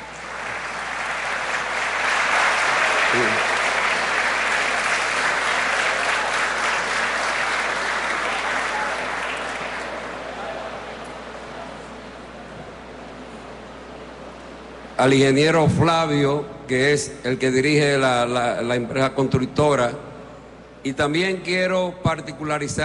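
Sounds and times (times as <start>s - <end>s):
large crowd applause: 0.0s - 11.9s
speech: 15.0s - 20.1s, 20.8s - 22.8s.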